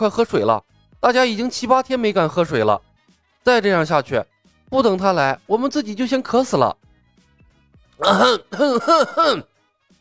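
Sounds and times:
speech: 0:00.0 - 0:06.9, 0:08.0 - 0:09.5
several people clearing throats: 0:08.0 - 0:09.5.

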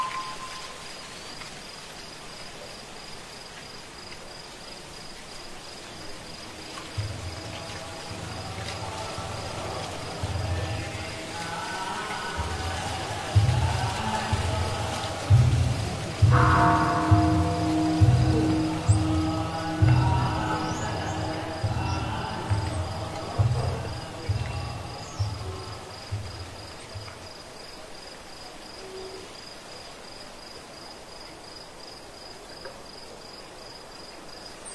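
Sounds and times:
ringing stroke: 0:00.0 - 0:00.8, 0:16.3 - 0:21.2
night insects chirring: 0:00.0 - 0:34.7
voices chanting: 0:05.8 - 0:27.4.

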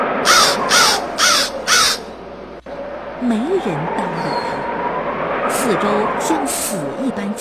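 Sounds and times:
crow cawing loudly: 0:00.2 - 0:02.1
speech: 0:03.2 - 0:04.5, 0:05.6 - 0:07.3.

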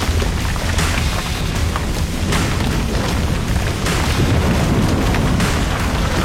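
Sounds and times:
city crashing down with huge boom: 0:00.0 - 0:06.2.

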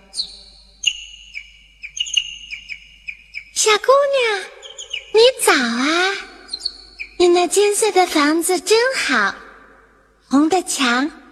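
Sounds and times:
small bird chirping: 0:00.0 - 0:07.6
speech: 0:03.6 - 0:06.3, 0:07.2 - 0:09.4, 0:10.3 - 0:11.2.

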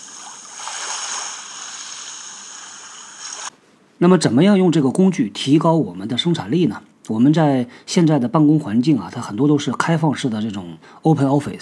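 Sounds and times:
flowing water white noise recording: 0:00.0 - 0:03.5
speech: 0:04.0 - 0:11.6.

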